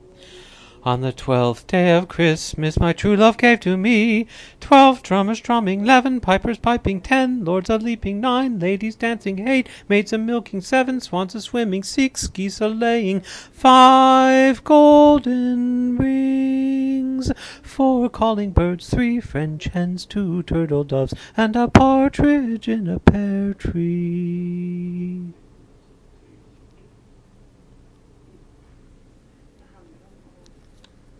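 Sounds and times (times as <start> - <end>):
person singing: 0.8 - 25.4.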